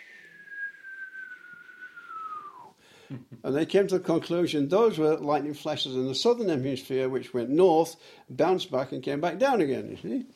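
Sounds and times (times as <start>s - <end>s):
person whistling imitating a double whistler radio signal: 0.0s - 2.7s
speech: 3.1s - 10.3s.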